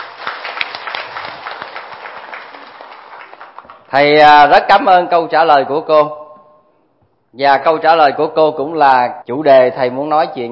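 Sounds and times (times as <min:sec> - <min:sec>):
audience applause at a mindfulness talk: 0:00.0 - 0:03.9
speech: 0:03.9 - 0:06.2, 0:07.4 - 0:10.5.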